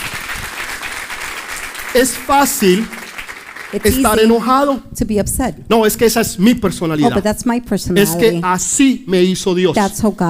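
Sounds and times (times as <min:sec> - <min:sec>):
loud sustained crowd applause: 0:00.0 - 0:04.4
speech: 0:02.0 - 0:03.0, 0:03.7 - 0:10.2.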